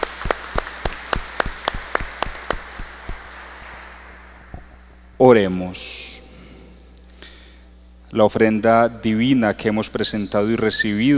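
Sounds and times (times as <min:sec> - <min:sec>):
audience applauding: 0:00.0 - 0:05.2
speech: 0:05.2 - 0:06.1, 0:08.1 - 0:11.1.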